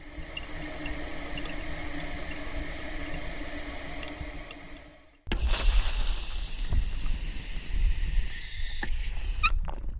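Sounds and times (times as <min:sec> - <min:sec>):
dripping faucet: 0:00.0 - 0:09.9
leaky toilet tank refilling: 0:00.0 - 0:09.9
garden hose with a worn connection spraying: 0:05.3 - 0:09.6.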